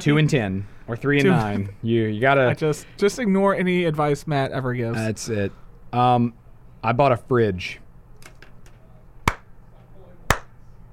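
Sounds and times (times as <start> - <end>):
speech: 0.0 - 7.8
hand clap: 9.3 - 9.5, 10.3 - 10.5.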